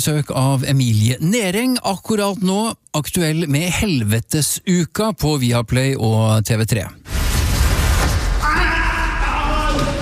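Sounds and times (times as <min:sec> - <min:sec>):
speech: 0:00.0 - 0:07.2
person screaming: 0:08.4 - 0:09.9.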